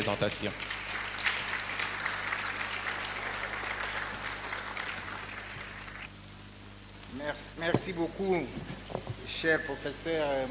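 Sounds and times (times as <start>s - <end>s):
speech: 0.0s - 0.8s, 7.2s - 10.4s
audience applause: 0.0s - 6.1s
low steady hum: 0.0s - 10.4s.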